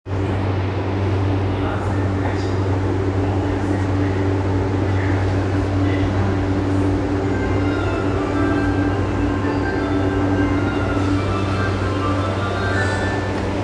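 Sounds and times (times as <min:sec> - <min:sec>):
train: 0:00.0 - 0:13.6.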